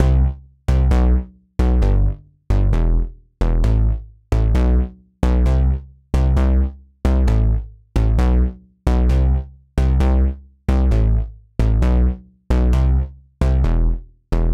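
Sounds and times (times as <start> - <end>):
poly bass synth: 0.0 - 14.5.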